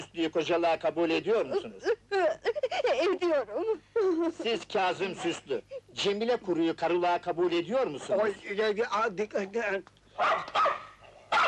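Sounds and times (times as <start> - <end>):
speech: 0.1 - 2.3, 3.0 - 10.6
dog barking during a civil wedding ceremony: 10.2 - 11.4.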